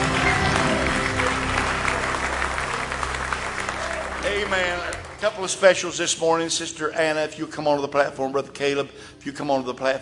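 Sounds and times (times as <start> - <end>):
church congregation clapping hands: 0.0 - 6.7
speech: 4.4 - 10.0.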